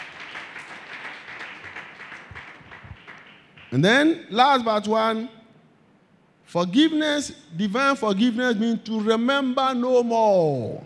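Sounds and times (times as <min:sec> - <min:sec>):
audience clapping hands: 0:00.0 - 0:03.9
speech: 0:03.7 - 0:05.4, 0:06.5 - 0:10.8.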